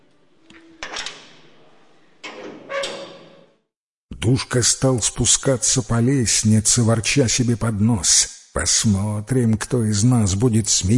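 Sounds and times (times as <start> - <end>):
heavy tower door creaking: 2.2 - 3.6
speech: 4.3 - 10.9.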